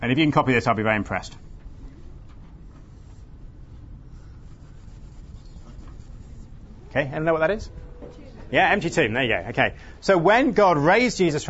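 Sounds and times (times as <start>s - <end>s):
speech: 0.1s - 1.4s, 6.9s - 11.4s
drawing strokes of someone drawing a diagram: 2.6s - 6.7s.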